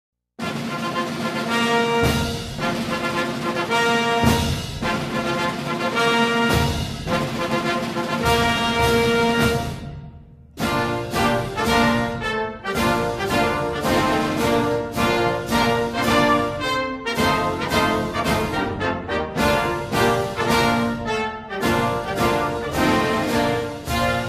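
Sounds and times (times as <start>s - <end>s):
instrumental march: 0.4s - 24.2s.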